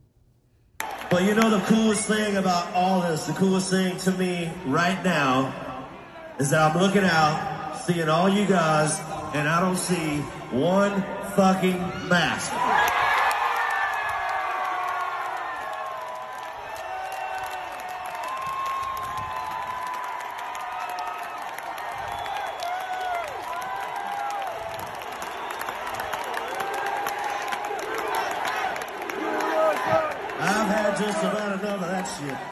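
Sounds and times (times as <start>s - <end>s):
clapping: 0.8s - 1.6s, 12.7s - 32.5s
concert crowd cheering for country artist: 0.8s - 32.5s
speech: 1.1s - 5.7s, 6.4s - 12.7s.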